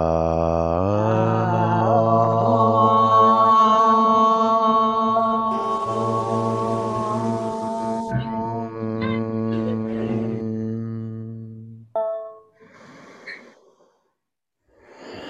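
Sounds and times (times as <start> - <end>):
yoga class chanting om: 0.0 - 11.0.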